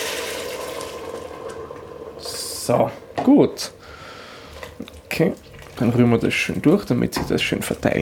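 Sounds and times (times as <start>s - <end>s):
warm vegetable broth poured into a hot pan to deglaze potato and pumpkin goulash: 0.0s - 2.8s
speech: 2.7s - 3.9s, 4.8s - 8.0s.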